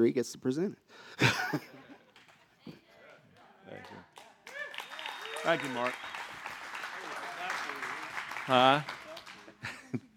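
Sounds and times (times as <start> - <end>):
speech: 0.0 - 1.8, 5.4 - 6.1, 8.5 - 9.0
laughter: 1.2 - 2.8, 9.3 - 10.1
audience clapping: 2.0 - 9.9.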